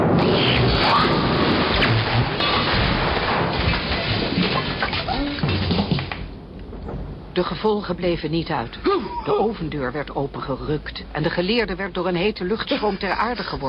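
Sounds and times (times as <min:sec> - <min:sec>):
deep rumbling thunder: 0:00.0 - 0:08.8
heavy rain pouring: 0:00.0 - 0:09.7
speech: 0:07.4 - 0:13.6.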